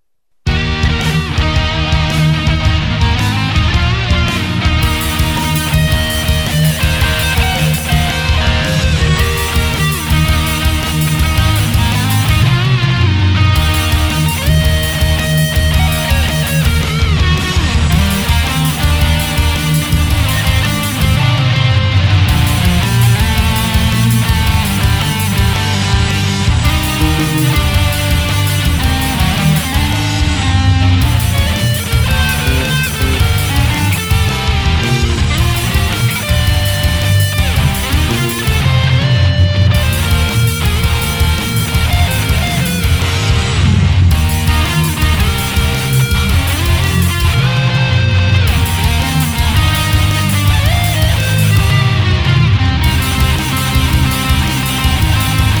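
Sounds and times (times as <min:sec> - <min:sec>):
metal jazz music: 0:00.5 - 0:55.5.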